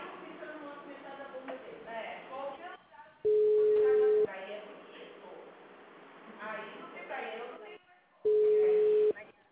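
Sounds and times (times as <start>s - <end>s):
telephone busy tone after a dropped phone call: 3.3s - 4.3s, 8.3s - 9.1s.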